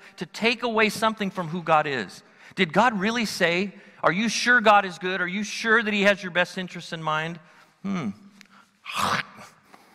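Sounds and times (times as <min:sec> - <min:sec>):
speech: 0:00.2 - 0:08.2, 0:08.9 - 0:09.5
vocal imitation of a bite: 0:08.8 - 0:09.5.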